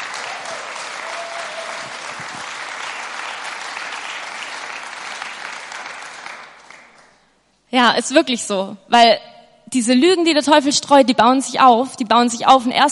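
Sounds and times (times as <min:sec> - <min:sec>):
audience applause: 0:00.0 - 0:07.2
speech: 0:07.7 - 0:12.8.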